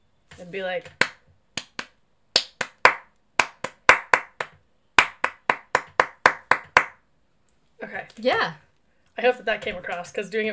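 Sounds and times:
rhythmic hand claps: 0:00.3 - 0:07.0, 0:09.5 - 0:10.2
speech: 0:00.4 - 0:01.1, 0:07.9 - 0:08.6, 0:09.2 - 0:10.5.

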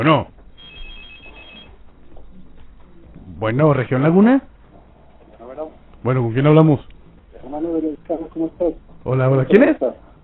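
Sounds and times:
speech: 0:00.0 - 0:00.4, 0:03.4 - 0:04.5, 0:06.0 - 0:10.0
telephone ringing with an incoming call: 0:00.6 - 0:01.9.

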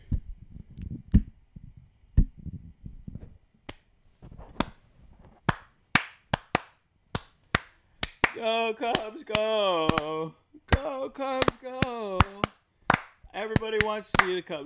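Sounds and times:
hands clapping: 0:05.5 - 0:14.6
speech: 0:08.4 - 0:12.5, 0:13.4 - 0:14.6.

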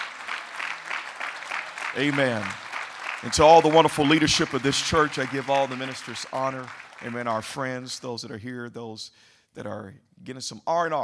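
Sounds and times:
audience clapping hands: 0:00.0 - 0:08.0
speech: 0:02.0 - 0:02.6, 0:03.2 - 0:11.0.

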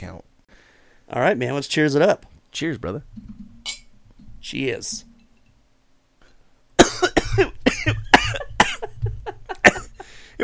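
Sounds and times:
speech: 0:00.0 - 0:00.3, 0:01.1 - 0:03.4, 0:04.4 - 0:05.1, 0:07.4 - 0:08.0
person coughing after whiskey went down wrong: 0:06.8 - 0:10.2.

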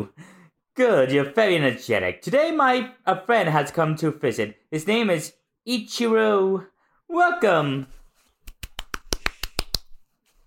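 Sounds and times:
speech: 0:00.8 - 0:08.0
applause: 0:08.6 - 0:09.8.

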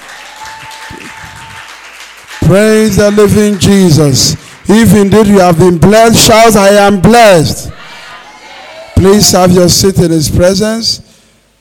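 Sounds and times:
church congregation applauding to welcome its pastor: 0:00.0 - 0:05.8
speech: 0:02.5 - 0:07.8, 0:09.0 - 0:11.0.

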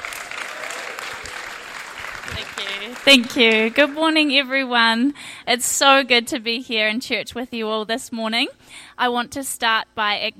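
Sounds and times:
audience round of applause: 0:00.0 - 0:04.0
speech: 0:02.4 - 0:10.3.

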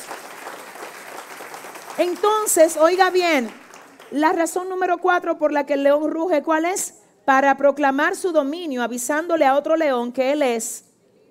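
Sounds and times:
audience applause: 0:00.0 - 0:04.2
speech: 0:02.0 - 0:10.9.

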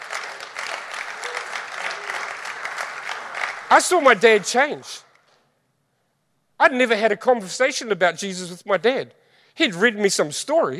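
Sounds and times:
audience clapping: 0:00.0 - 0:05.4
speech: 0:03.7 - 0:05.1, 0:06.6 - 0:10.7.

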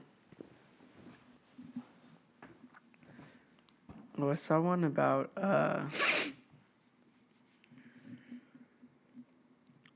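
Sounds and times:
speech: 0:04.3 - 0:06.2
sniffling nose: 0:05.9 - 0:06.4.

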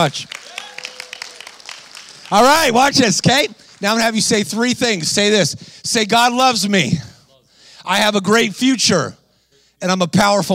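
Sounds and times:
speech: 0:00.0 - 0:00.6, 0:02.3 - 0:07.1, 0:07.8 - 0:09.2, 0:09.8 - 0:10.5
crowd clapping: 0:00.0 - 0:04.7
voices cheering and whooping: 0:00.4 - 0:01.5.

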